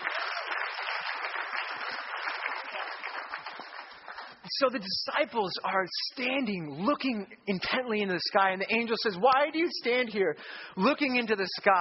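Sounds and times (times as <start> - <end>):
applause: 0.0 - 4.5
speech: 4.6 - 11.8.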